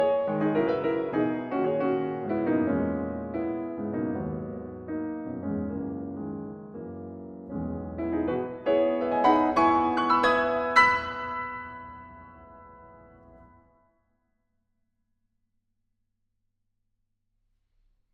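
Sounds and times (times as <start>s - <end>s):
piano mazurka: 0.0s - 13.8s.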